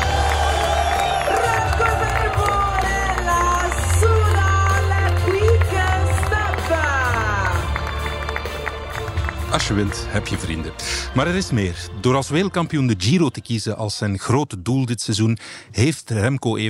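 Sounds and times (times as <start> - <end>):
crowd cheering and applauding a passing cyclist: 0.0 - 11.6
speech: 9.6 - 16.6.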